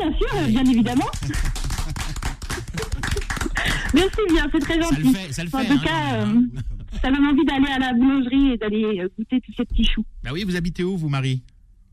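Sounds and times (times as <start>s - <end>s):
speech: 0.0s - 1.7s, 3.9s - 11.5s
laughter: 0.3s - 7.3s
small group applauding in a studio: 0.4s - 6.0s.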